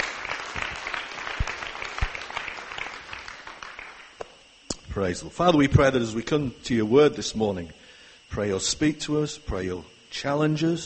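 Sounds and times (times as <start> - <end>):
church congregation applauding first-time visitors: 0.0 - 4.2
speech: 5.0 - 10.8.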